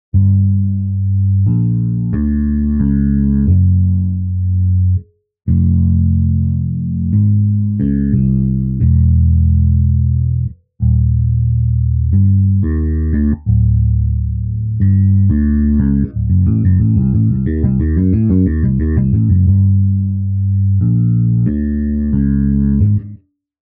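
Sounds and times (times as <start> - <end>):
bass practice: 0.0 - 23.2.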